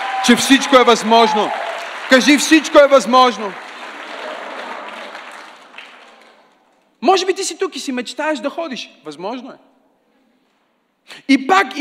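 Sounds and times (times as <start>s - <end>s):
audience applauding: 0.0s - 6.7s
speech: 0.2s - 3.6s, 7.1s - 9.7s, 11.1s - 11.7s.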